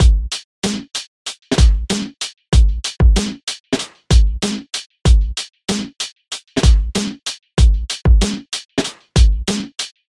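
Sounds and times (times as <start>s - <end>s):
lo-fi beat: 0.0s - 0.9s, 1.5s - 3.4s, 4.1s - 5.9s, 6.6s - 9.8s.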